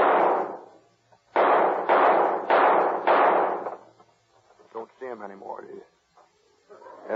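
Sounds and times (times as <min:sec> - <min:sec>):
toy guns firing at the knobs on top of a street sign: 0:00.0 - 0:00.7, 0:01.4 - 0:03.9
speech: 0:05.2 - 0:05.9.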